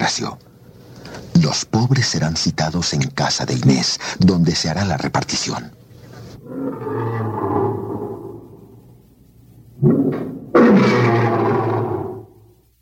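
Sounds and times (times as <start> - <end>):
speech: 0.0 - 0.5, 1.4 - 5.8, 6.5 - 7.4
lions roaring in the vivarium of the amphitheatre: 6.4 - 8.7, 9.8 - 12.4.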